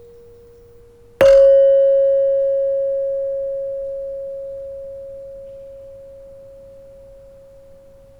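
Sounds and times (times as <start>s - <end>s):
large saron struck with wooden mallet in Indonesian gamelan: 1.2s - 4.9s.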